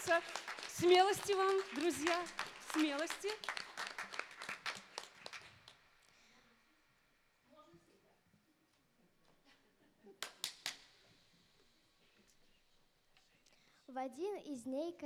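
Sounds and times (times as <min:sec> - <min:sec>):
audience applauding to encourage shy children: 0:00.0 - 0:05.8
speech: 0:00.1 - 0:03.6, 0:14.0 - 0:15.0.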